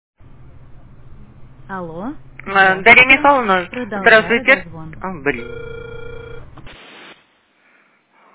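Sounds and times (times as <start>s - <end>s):
speech: 1.7s - 6.1s
telephone ringing tone while a call is being dialed: 5.3s - 6.6s.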